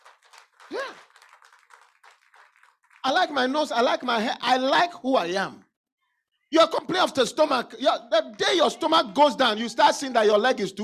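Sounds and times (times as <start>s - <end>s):
audience clapping: 0.0s - 3.9s
person cheering: 0.7s - 1.1s
speech: 0.7s - 1.1s, 3.0s - 5.6s, 6.5s - 10.8s.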